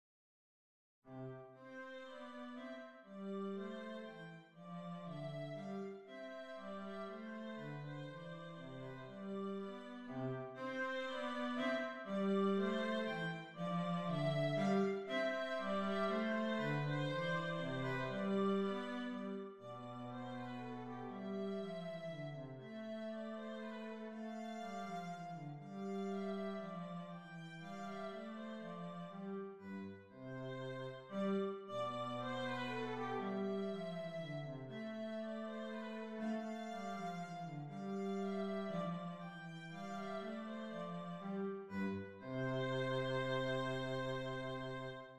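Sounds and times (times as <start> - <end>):
passepied dance music: 1.7 - 45.1.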